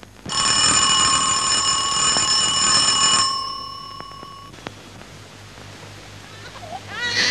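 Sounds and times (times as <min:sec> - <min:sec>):
electric bell ringing sharply: 0:00.3 - 0:04.5.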